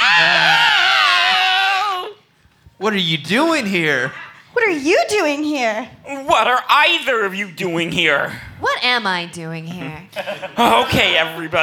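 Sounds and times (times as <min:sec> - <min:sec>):
two people screaming: 0:00.0 - 0:02.2
speech: 0:02.9 - 0:11.6
laughter: 0:10.1 - 0:11.2.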